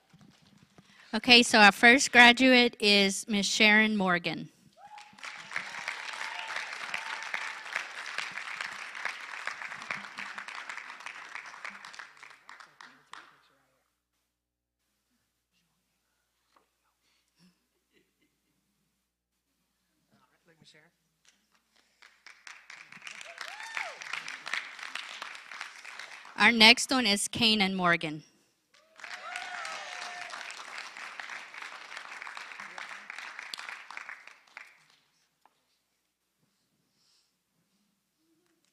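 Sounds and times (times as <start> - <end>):
speech: 1.1 - 4.6, 26.5 - 28.3
audience applause: 4.8 - 13.4, 22.0 - 26.5, 28.8 - 35.0.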